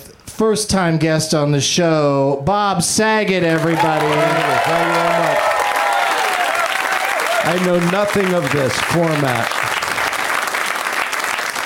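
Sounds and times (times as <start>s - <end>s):
speech: 0.4s - 5.5s, 7.4s - 9.6s
audience applause: 3.5s - 11.6s.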